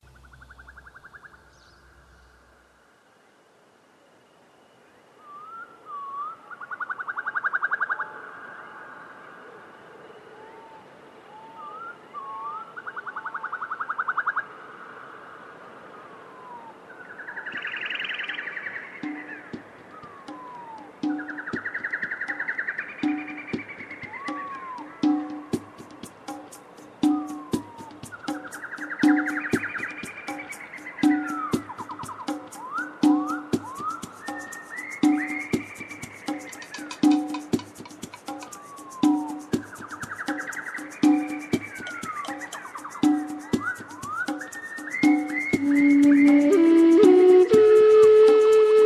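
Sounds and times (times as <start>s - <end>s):
nature sounds: 0.0s - 48.8s
ambient music: 23.1s - 48.8s.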